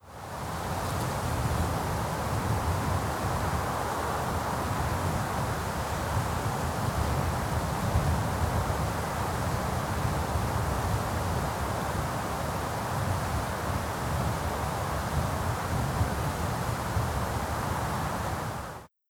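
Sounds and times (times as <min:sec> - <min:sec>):
wind in the Atacama: 0:00.0 - 0:18.9.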